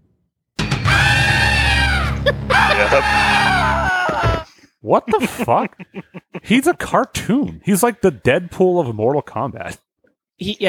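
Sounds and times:
scream sound effect: 0:00.8 - 0:04.4
laughter: 0:01.9 - 0:04.4, 0:05.0 - 0:07.4
speech: 0:04.8 - 0:09.8, 0:10.4 - 0:10.6.

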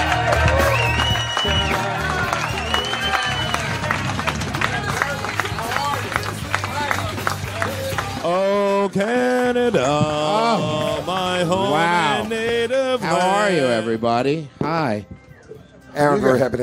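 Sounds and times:
whoops and shouting voices: 0:00.0 - 0:03.8
audience clapping: 0:00.0 - 0:08.5, 0:09.8 - 0:12.6
speech: 0:09.0 - 0:10.2, 0:11.4 - 0:15.1, 0:16.0 - 0:16.6.

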